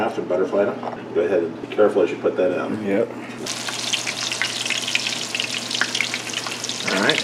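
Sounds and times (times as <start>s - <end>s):
speech: 0.0s - 3.6s
chicken breasts frying in a pan: 3.5s - 7.2s.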